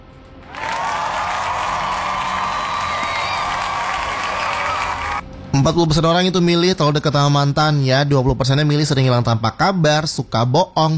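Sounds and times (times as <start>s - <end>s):
audience applause and cheering: 0.4s - 5.2s
speech: 5.6s - 10.9s.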